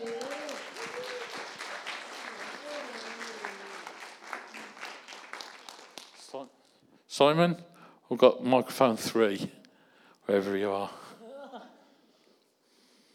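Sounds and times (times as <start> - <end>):
church house group applauding to welcome a speaker: 0.0 - 6.8
speech: 6.4 - 9.6, 10.3 - 11.0.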